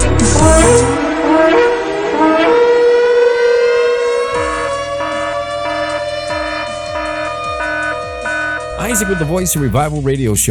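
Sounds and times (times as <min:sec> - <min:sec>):
alarm siren wailing: 0:00.0 - 0:09.9
speech: 0:09.0 - 0:10.4.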